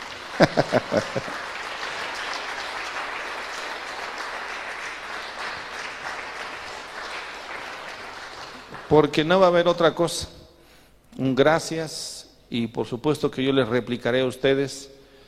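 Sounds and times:
laughter: 0.0 - 2.3
small audience applauding themselves: 0.0 - 9.8
speech: 0.4 - 1.5, 8.9 - 10.4, 11.2 - 15.0.

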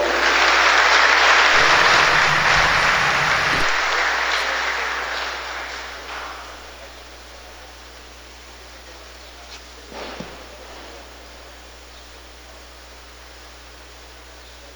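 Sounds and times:
audience applause: 0.0 - 7.0.

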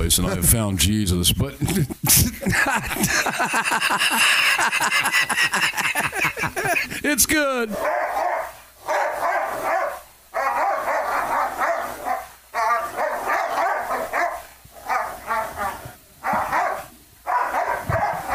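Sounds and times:
speech: 0.1 - 8.2
laughter: 1.4 - 7.4
dog barking: 7.7 - 18.3.

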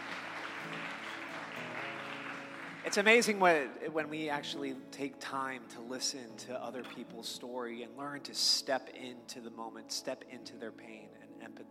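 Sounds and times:
audience applause: 0.0 - 3.5
speech: 2.8 - 11.6.

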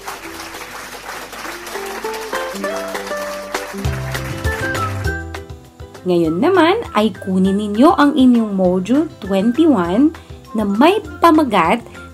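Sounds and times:
many hands clapping: 0.0 - 5.5
bright melodic tune: 1.6 - 12.1
speech: 6.0 - 11.9.

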